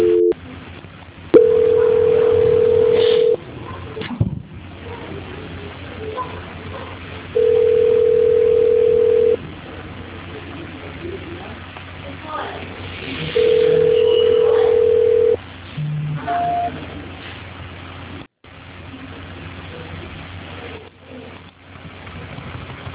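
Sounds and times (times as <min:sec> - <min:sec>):
telephone line tones during a call transfer: 0:00.0 - 0:00.4, 0:01.4 - 0:03.4, 0:07.4 - 0:09.4, 0:13.4 - 0:16.7
short beeps: 0:15.8 - 0:16.7.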